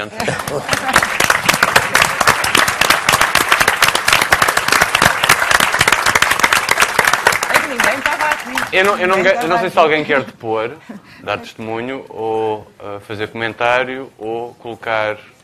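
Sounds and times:
speech: 0:00.0 - 0:01.0, 0:08.0 - 0:15.3
audience applause: 0:00.0 - 0:09.6.

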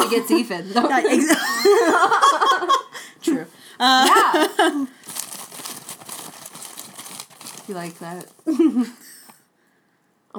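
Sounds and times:
speech: 0:00.1 - 0:02.8, 0:03.8 - 0:05.0, 0:07.7 - 0:09.1
laughter: 0:00.8 - 0:03.0, 0:03.8 - 0:04.9
receipt tape paper being crumpled for recycling: 0:04.1 - 0:08.9.

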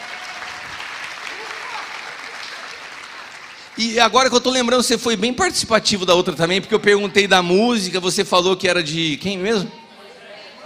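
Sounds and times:
audience applause: 0:00.0 - 0:04.6
speech: 0:03.8 - 0:09.8.

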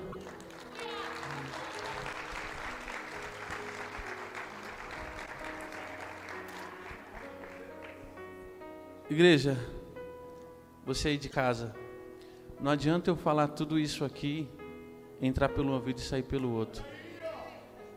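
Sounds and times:
audience applause: 0:00.0 - 0:08.0
speech: 0:09.1 - 0:09.8, 0:10.9 - 0:11.8, 0:12.6 - 0:14.6, 0:15.2 - 0:17.0.

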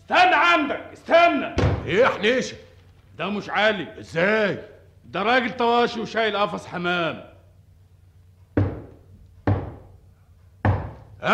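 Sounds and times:
speech: 0:00.1 - 0:07.3
firm heavy knocks on a door: 0:01.6 - 0:02.0, 0:08.6 - 0:10.0, 0:10.6 - 0:11.1.

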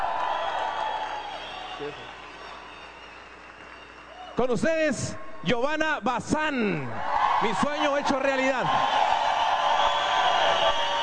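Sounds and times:
audience applause: 0:00.0 - 0:04.4, 0:07.0 - 0:11.0
speech: 0:01.8 - 0:02.2, 0:04.4 - 0:09.0.

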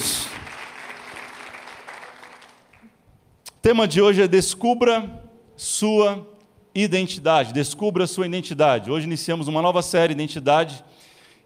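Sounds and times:
audience applauding: 0:00.0 - 0:03.0
speech: 0:03.6 - 0:11.1.

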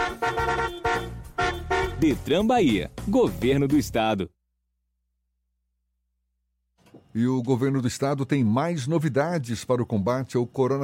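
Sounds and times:
car horn honking: 0:00.0 - 0:02.3
speech: 0:02.0 - 0:04.4, 0:07.1 - 0:10.8.

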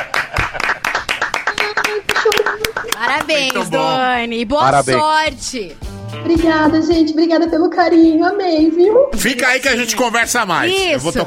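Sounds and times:
laughter: 0:00.0 - 0:03.0
people clapping: 0:00.0 - 0:04.0
speech: 0:03.0 - 0:11.2.

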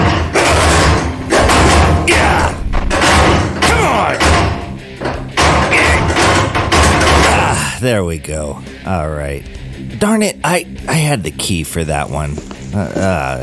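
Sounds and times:
locked cellar door kicked until it bursts open: 0:00.0 - 0:07.5
speech: 0:07.8 - 0:13.4.

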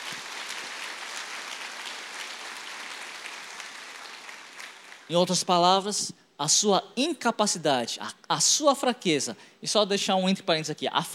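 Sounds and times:
audience applause: 0:00.0 - 0:05.1
speech: 0:05.1 - 0:11.1.

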